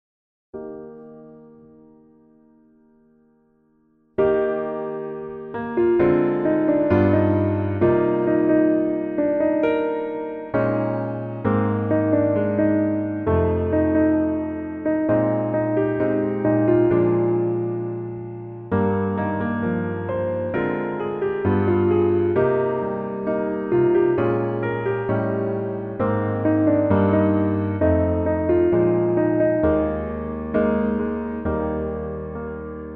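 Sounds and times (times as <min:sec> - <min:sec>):
piano melody backing track: 0:00.6 - 0:32.9.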